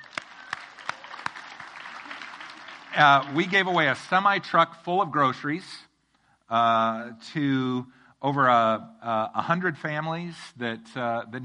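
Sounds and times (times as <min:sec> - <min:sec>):
audience applause: 0:00.0 - 0:04.0
speech: 0:03.0 - 0:05.9, 0:06.5 - 0:11.4.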